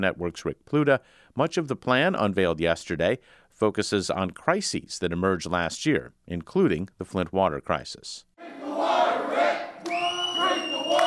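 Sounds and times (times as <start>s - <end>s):
speech: 0.0s - 9.0s
protesters chanting outside a room: 8.4s - 11.0s.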